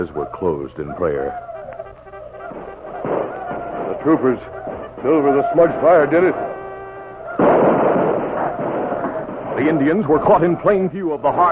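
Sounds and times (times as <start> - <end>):
speech: 0.0 - 1.5, 4.0 - 6.5, 9.6 - 11.5
heavy gunfire in an Old West battle: 2.4 - 10.8.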